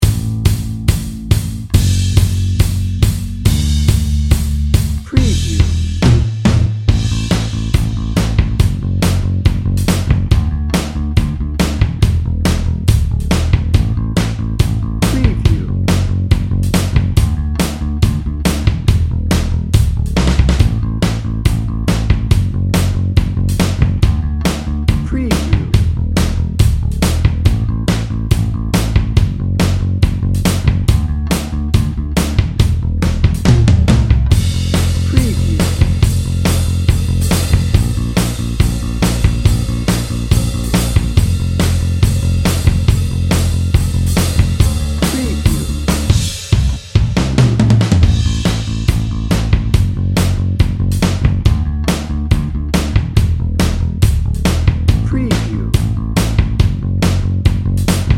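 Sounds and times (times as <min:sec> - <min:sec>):
happy pop rock music: 0:00.0 - 0:58.1.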